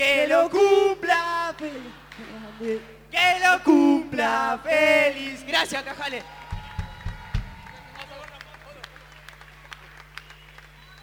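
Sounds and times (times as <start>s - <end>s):
speech: 0.0s - 6.4s
applause and clapping: 6.0s - 11.0s.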